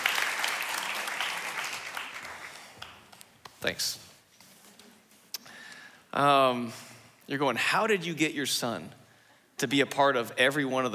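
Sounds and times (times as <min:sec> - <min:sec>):
audience applause: 0:00.0 - 0:03.0
speech: 0:03.6 - 0:04.1, 0:06.1 - 0:09.0, 0:09.6 - 0:10.9.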